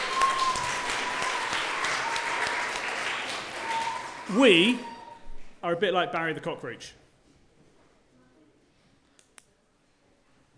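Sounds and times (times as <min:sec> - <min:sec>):
audience applause: 0:00.0 - 0:05.0
speech: 0:04.3 - 0:04.9, 0:05.6 - 0:07.0.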